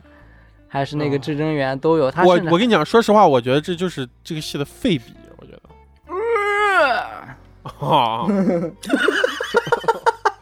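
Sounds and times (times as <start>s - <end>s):
speech: 0.7s - 5.5s, 7.8s - 9.8s
person imitating pig squeals: 6.1s - 8.3s
laughter: 7.7s - 10.4s.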